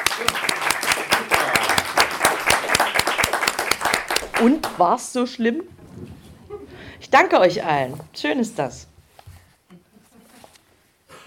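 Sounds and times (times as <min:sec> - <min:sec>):
audience applause: 0:00.0 - 0:04.8
speech: 0:04.4 - 0:05.8, 0:07.1 - 0:08.9.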